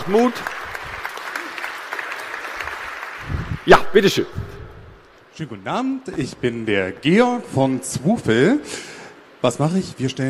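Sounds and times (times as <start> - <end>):
speech: 0.0 - 0.6, 3.6 - 4.5, 5.4 - 10.2
audience applause: 0.0 - 3.8.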